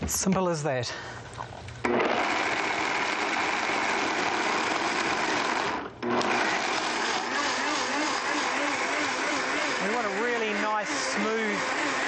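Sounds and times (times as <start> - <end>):
speech: 0.1 - 2.0
kitchen blender blending cashew nuts: 1.8 - 12.0.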